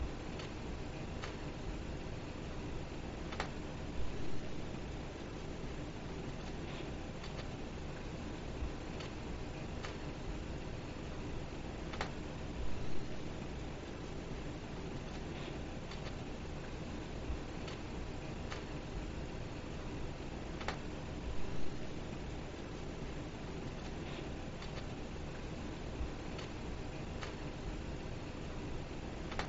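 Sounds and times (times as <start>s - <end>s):
living room ambience in a house: 0.0s - 29.4s.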